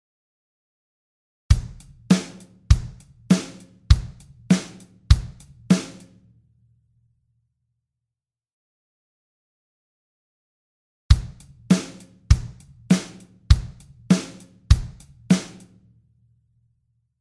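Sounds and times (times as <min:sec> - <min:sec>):
drum machine straight four-four beat: 0:01.5 - 0:06.0, 0:11.1 - 0:15.6.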